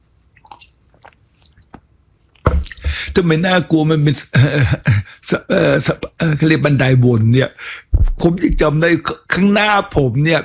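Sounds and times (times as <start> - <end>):
knock: 2.5 - 3.0
person drinking water: 2.5 - 3.2
speech: 3.2 - 10.4.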